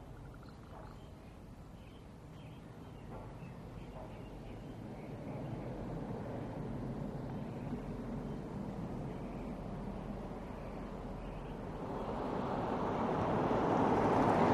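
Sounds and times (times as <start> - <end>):
birds on a suburban street: 0.0 - 12.4
light cars passing by on a suburban street: 3.0 - 14.5.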